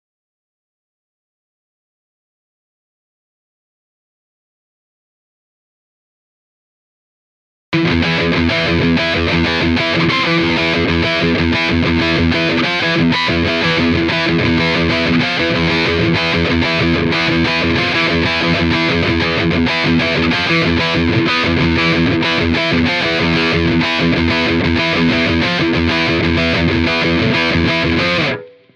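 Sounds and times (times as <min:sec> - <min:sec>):
rhythm guitar: 0:07.8 - 0:28.7.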